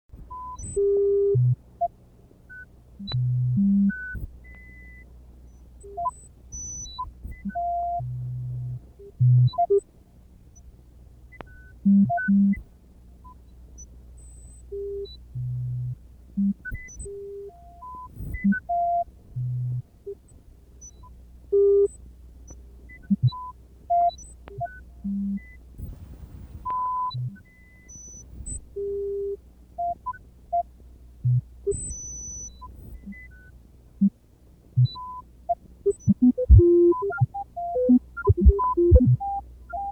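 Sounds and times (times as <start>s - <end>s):
sine wave music: 0.2s - 39.9s.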